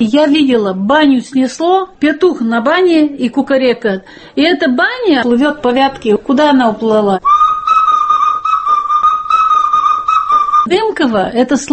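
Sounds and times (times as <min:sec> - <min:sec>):
speech: 0:00.0 - 0:07.4, 0:10.6 - 0:11.7
whistling: 0:07.2 - 0:10.7.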